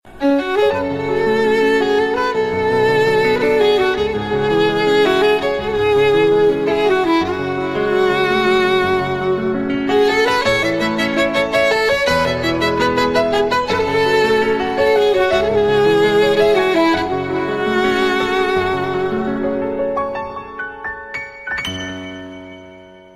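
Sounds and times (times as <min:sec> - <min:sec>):
violin: 0:00.0 - 0:22.8.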